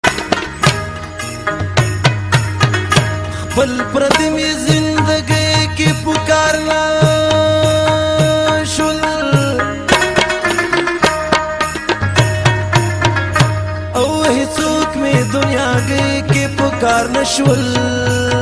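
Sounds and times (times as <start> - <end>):
Pashto tappy ringtone: 0.0 - 18.4.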